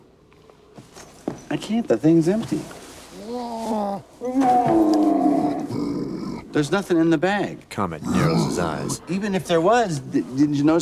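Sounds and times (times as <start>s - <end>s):
speech: 1.5s - 2.8s, 6.6s - 10.8s
animal growling: 3.2s - 6.8s, 8.0s - 9.1s.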